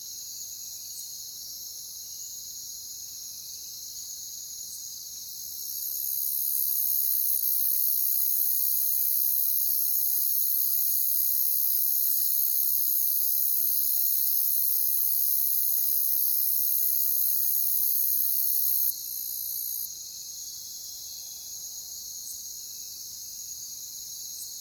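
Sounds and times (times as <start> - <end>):
crickets chirping: 0.0 - 24.5.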